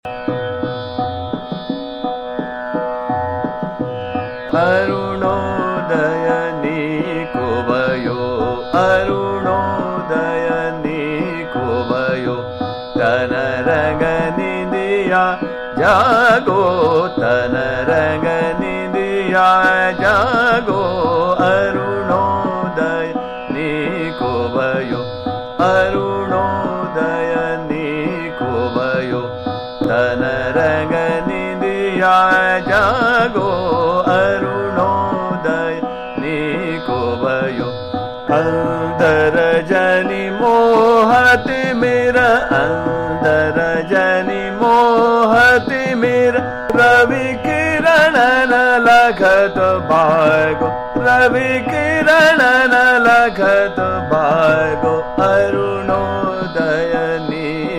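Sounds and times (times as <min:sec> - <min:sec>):
Hindustani classical khyal vocal music in raga Bhairav, fast ektal: 0:00.0 - 0:57.7.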